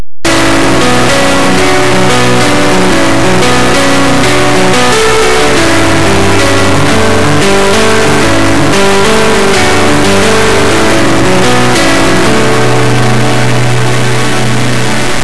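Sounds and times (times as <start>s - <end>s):
new age music: 0.3s - 15.2s.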